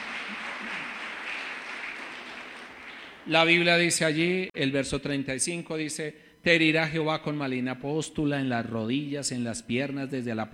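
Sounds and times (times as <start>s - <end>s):
audience applauding: 0.0s - 3.7s
speech: 3.2s - 10.5s.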